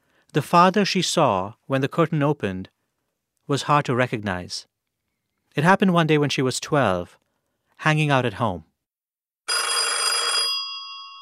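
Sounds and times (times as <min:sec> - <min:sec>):
speech: 0:00.4 - 0:02.7, 0:03.5 - 0:04.7, 0:05.6 - 0:07.2, 0:07.8 - 0:08.7
telephone bell ringing in a home: 0:09.5 - 0:11.2.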